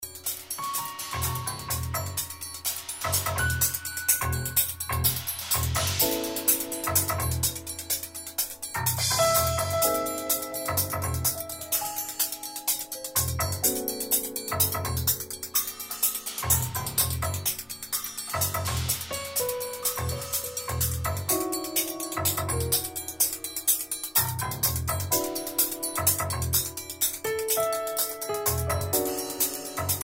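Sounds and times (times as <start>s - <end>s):
music interlude: 0.0s - 30.0s.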